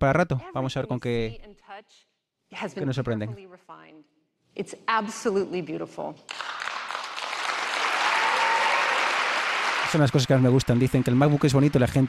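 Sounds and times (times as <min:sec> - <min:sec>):
speech: 0:00.0 - 0:07.0, 0:09.9 - 0:12.0
audience applause: 0:06.3 - 0:12.0.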